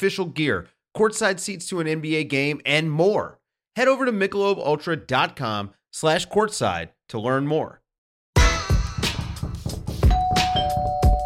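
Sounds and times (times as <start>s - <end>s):
speech: 0.0s - 7.8s
doorbell ringing: 10.1s - 11.2s.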